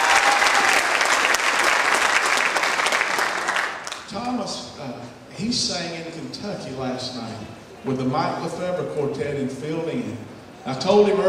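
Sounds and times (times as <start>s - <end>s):
church audience clapping for gospel quartet singers: 0.0s - 4.4s
speech: 5.4s - 11.2s.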